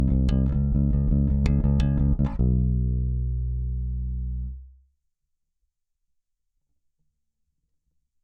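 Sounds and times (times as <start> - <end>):
bass: 0.0 - 4.9.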